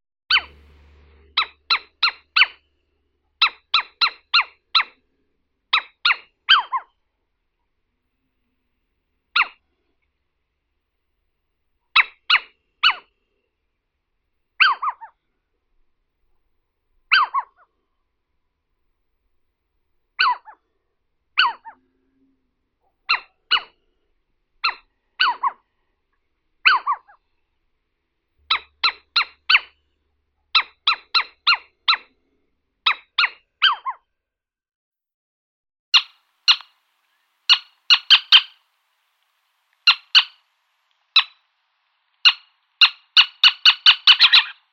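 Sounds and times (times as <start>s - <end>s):
little owl Athene noctua alarm calls: 0.3s - 0.8s, 1.4s - 2.7s, 3.4s - 5.0s, 5.7s - 6.9s, 9.3s - 9.6s, 12.0s - 13.1s, 14.6s - 15.2s, 17.1s - 17.7s, 20.2s - 20.6s, 21.4s - 21.8s, 23.1s - 23.8s, 24.6s - 25.6s, 26.6s - 27.2s, 28.5s - 29.8s, 30.5s - 32.1s, 32.8s - 34.0s, 36.0s - 38.7s, 39.8s - 40.4s, 41.2s - 41.4s, 42.2s - 44.7s.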